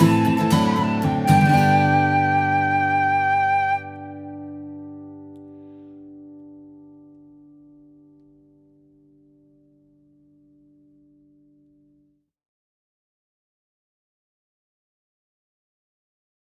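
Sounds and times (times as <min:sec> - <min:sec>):
instrumental music: 0:00.0 - 0:06.0.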